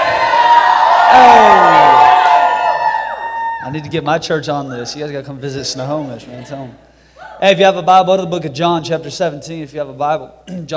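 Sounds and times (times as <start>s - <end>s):
crowd cheering and whooping: 0.0s - 3.9s
speech: 3.7s - 10.7s.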